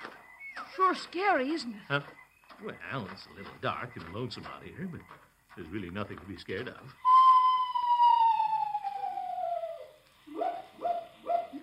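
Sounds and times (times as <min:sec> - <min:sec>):
speech: 0:00.8 - 0:07.1
screech owl call: 0:07.0 - 0:11.6.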